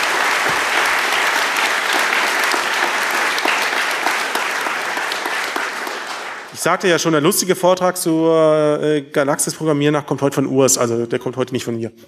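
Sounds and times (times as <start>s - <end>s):
audience applause: 0.0s - 6.8s
speech: 6.6s - 12.0s.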